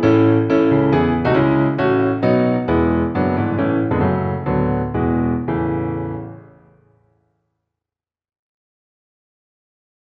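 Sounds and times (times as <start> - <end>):
piano: 0.0 - 7.4.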